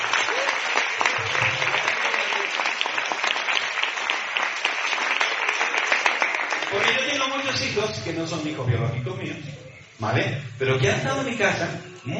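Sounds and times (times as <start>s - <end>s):
audience applause: 0.0s - 7.5s
speech: 6.9s - 12.1s.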